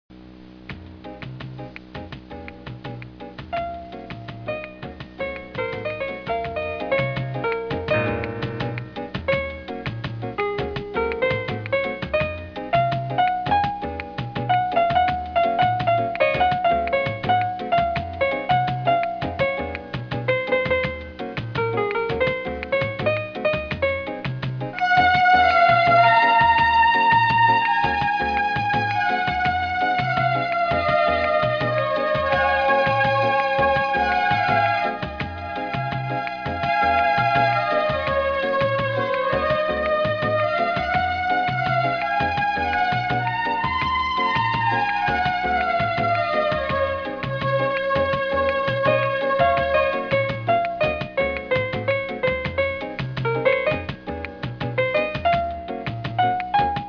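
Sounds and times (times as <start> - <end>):
samba music: 0.7 - 56.8.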